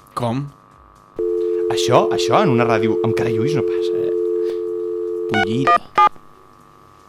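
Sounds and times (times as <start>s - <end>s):
speech: 0.2s - 0.6s, 1.2s - 4.2s, 5.3s - 5.9s
telephone keypad dialing tones: 1.2s - 5.7s.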